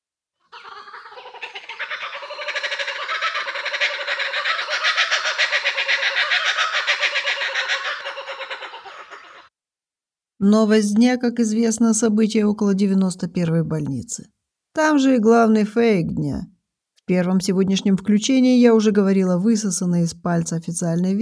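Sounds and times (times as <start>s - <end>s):
kookaburra call: 0.4s - 9.5s
speech: 10.4s - 16.5s, 17.1s - 21.2s.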